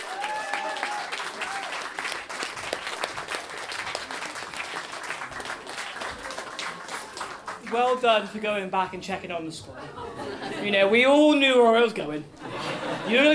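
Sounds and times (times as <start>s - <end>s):
audience applause: 0.0s - 8.1s
speech: 7.7s - 12.4s, 13.0s - 13.3s
laughter: 9.7s - 11.0s, 12.4s - 13.3s.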